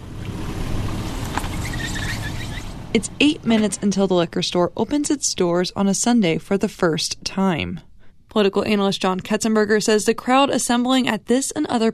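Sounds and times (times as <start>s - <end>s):
car engine pulling into the Village Bottle Shop lot in West Lafayette, Indiana: 0.0s - 4.8s
speech: 2.9s - 11.9s.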